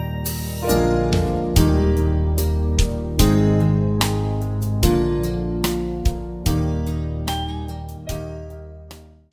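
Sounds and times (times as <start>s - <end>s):
backing track without backing vocals: 0.1s - 9.2s.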